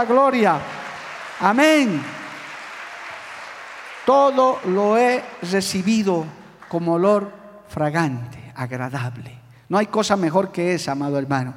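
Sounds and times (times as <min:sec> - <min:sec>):
speech: 0:00.0 - 0:00.8, 0:01.4 - 0:02.2, 0:04.0 - 0:11.5
audience applause: 0:00.0 - 0:06.8.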